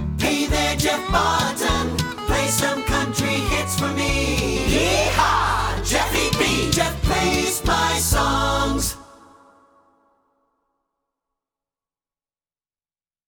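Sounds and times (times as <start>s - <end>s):
song: 0.2s - 9.4s.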